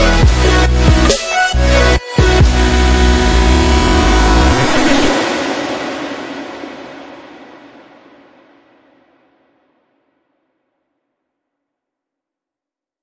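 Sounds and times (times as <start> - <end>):
future bass music: 0.0 - 6.0.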